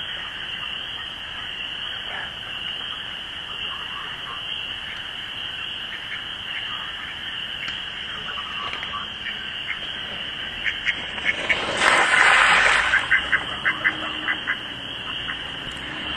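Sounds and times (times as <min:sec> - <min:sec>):
ducks on a still lake on a chilly April night: 0:00.0 - 0:16.1.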